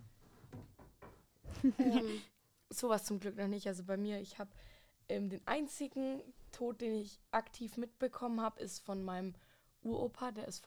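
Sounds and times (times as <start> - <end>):
knocking on wood for luck: 0.1 - 1.6
speech: 1.6 - 10.6.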